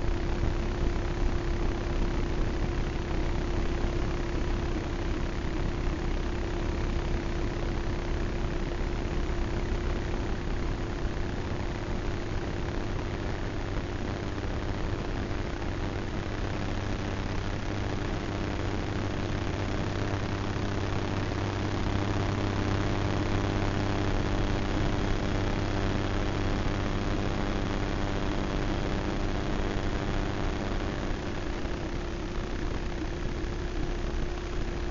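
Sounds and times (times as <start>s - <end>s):
Soma Ether electromagnetic frequencies rendered as hum and hiss: 0.0s - 34.9s.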